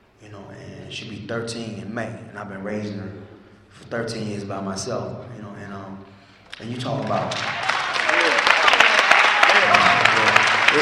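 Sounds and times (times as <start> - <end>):
speech: 0.2 - 7.6
audience clapping: 6.5 - 10.8.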